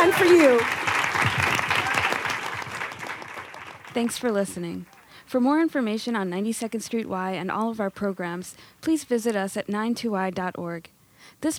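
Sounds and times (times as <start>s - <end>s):
speech: 0.0s - 1.4s, 4.0s - 11.5s
audience applause: 0.0s - 5.1s.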